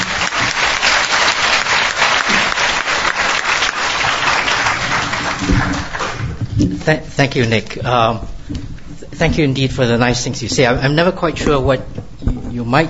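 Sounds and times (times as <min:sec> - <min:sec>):
audience applause: 0:00.0 - 0:06.4
speech: 0:06.8 - 0:12.0, 0:12.6 - 0:12.8.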